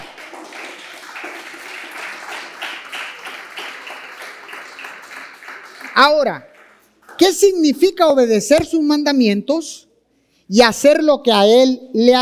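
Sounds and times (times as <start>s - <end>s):
audience applause: 0.0s - 6.8s
speech: 6.0s - 6.5s, 7.2s - 9.9s, 10.5s - 12.1s.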